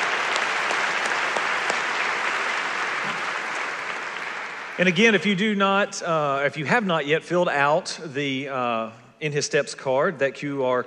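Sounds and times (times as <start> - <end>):
audience applause welcoming guests at a gathering: 0.0 - 5.4
speech: 4.8 - 10.8.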